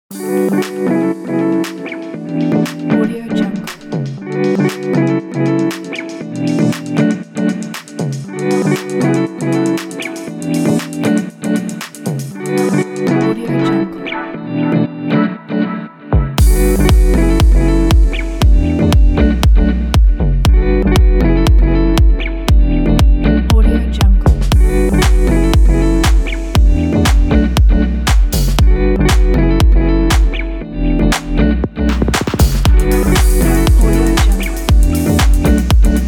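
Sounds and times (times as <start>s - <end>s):
upbeat summer pop music: 0.1s - 36.0s.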